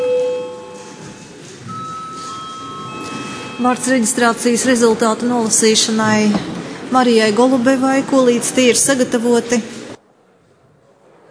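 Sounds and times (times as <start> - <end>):
parliament session bell ringing: 0.0 - 4.9
speech: 3.6 - 9.8.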